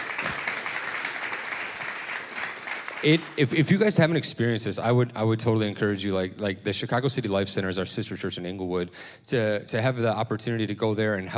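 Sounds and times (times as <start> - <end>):
audience applause: 0.0 - 3.9
speech: 3.0 - 11.3.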